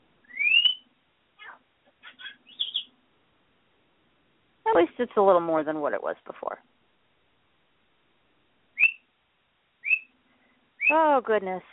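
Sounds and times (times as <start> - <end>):
pet birds chirping and whistling: 0.2 - 3.0, 8.8 - 9.2, 9.8 - 10.2
speech: 4.8 - 6.7, 10.9 - 11.7.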